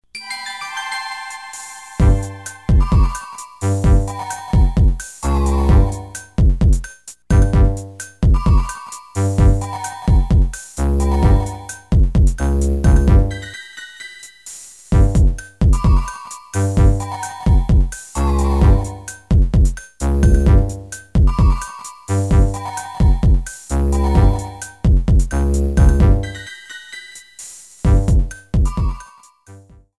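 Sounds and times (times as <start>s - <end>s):
illusory rhythm: 0.2s - 29.4s.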